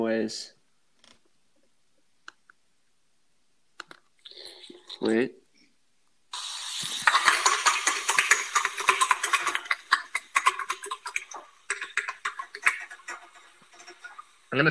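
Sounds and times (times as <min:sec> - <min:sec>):
speech: 0:00.0 - 0:00.6, 0:05.0 - 0:05.4
horse hooves walking: 0:06.8 - 0:14.4.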